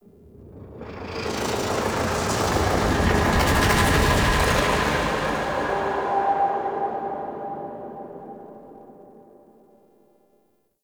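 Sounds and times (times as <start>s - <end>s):
pulsating whoosh: 0.7s - 9.1s.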